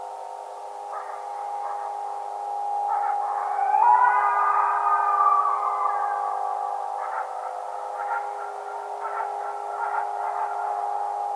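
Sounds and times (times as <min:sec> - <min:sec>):
coyote howling: 0:00.9 - 0:11.2.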